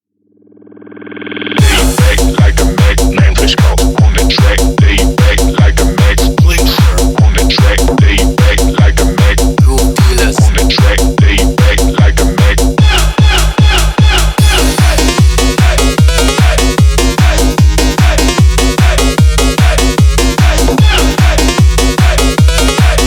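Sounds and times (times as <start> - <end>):
hardbass music: 1.6 - 23.0.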